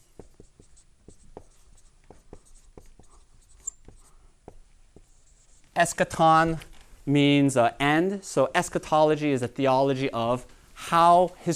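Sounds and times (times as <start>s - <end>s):
word being written by hand during a Bible lecture: 0.0s - 5.8s
speech: 5.8s - 11.5s.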